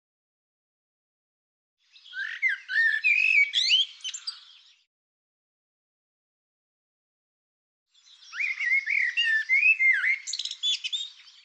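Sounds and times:
bird song: 1.8 - 4.9, 7.9 - 11.4.

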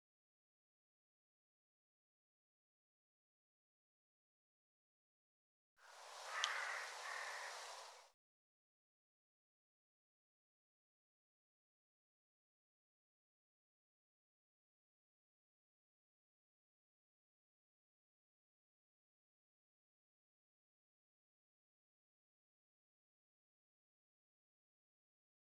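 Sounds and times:
bird giving harsh raspy caws: 5.8 - 8.1.

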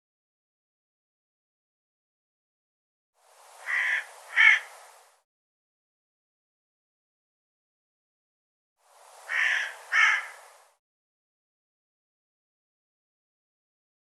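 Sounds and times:
bird harsh calls: 3.6 - 4.7, 9.3 - 10.4.

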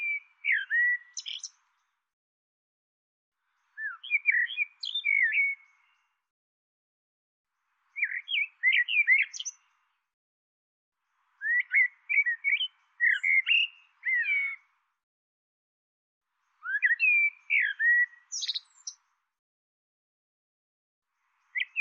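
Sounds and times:
bird twittering chirps: 0.0 - 1.6, 3.7 - 6.0, 8.0 - 9.6, 11.4 - 14.6, 16.6 - 19.0, 21.5 - 21.7.

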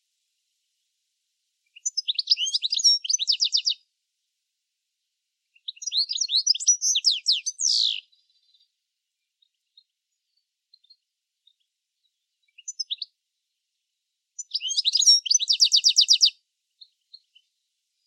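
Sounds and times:
bird giving high thin chirps: 1.7 - 3.8, 5.6 - 8.7, 9.4 - 13.1, 14.4 - 18.0.

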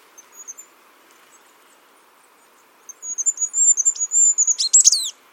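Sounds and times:
bird chirping: 0.2 - 5.2.

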